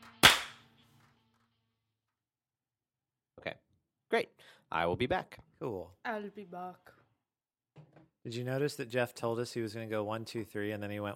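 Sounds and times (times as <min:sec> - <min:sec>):
hand clap to sync recording: 0:00.0 - 0:00.7
speech: 0:04.1 - 0:07.0, 0:07.8 - 0:11.1.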